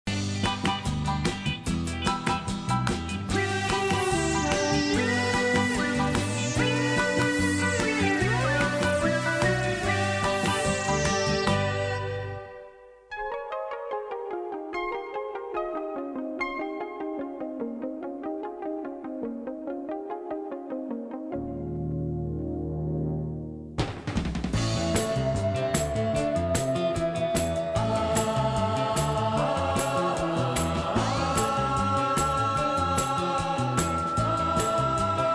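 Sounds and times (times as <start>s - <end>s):
heavenly instrumental music: 0.5s - 23.8s, 24.6s - 35.3s.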